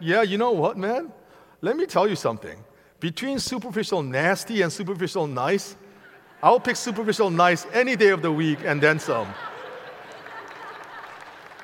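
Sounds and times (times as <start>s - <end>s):
speech: 0.0s - 5.8s, 6.4s - 9.5s
laughter: 5.9s - 11.6s
audience clapping: 8.0s - 11.6s.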